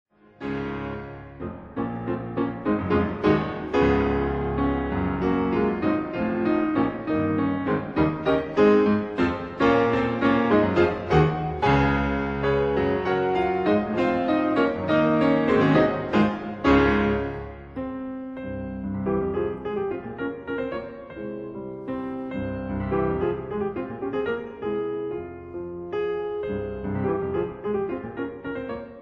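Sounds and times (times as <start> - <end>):
piano pieces: 0.1 - 29.0.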